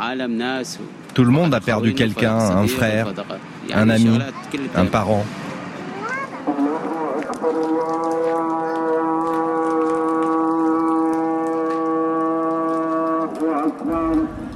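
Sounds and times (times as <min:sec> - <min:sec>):
speech: 0:00.0 - 0:05.4, 0:07.4 - 0:08.6
call to prayer echoing through a ruined city: 0:00.9 - 0:05.4, 0:06.0 - 0:14.5.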